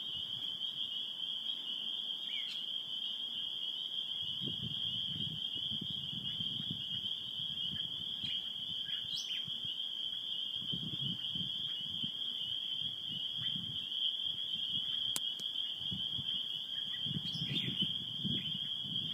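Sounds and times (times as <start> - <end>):
spring peepers calling: 0.0 - 19.1.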